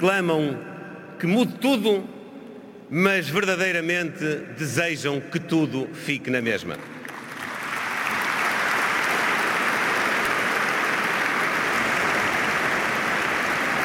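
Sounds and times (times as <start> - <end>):
speech: 0.0 - 2.2, 2.9 - 7.0
crowd applause: 6.8 - 13.8.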